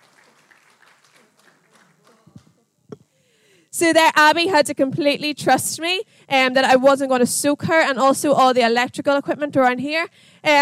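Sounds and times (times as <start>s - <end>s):
audience applause: 0.0s - 2.4s
speech: 3.8s - 10.6s.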